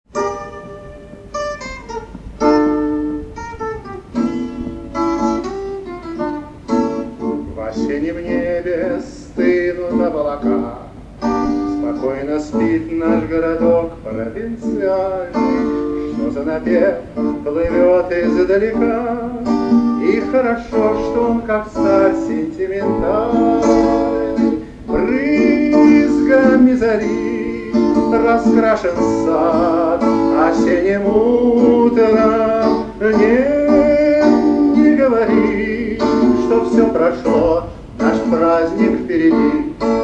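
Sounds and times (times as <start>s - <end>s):
sentimental tango music: 0.1s - 40.0s.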